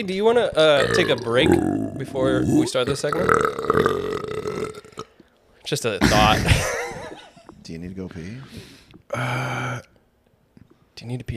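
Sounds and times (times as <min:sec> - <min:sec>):
speech: 0:00.0 - 0:04.1, 0:05.7 - 0:06.8, 0:07.7 - 0:09.9, 0:11.0 - 0:11.3
burp: 0:00.7 - 0:05.3, 0:06.0 - 0:07.2.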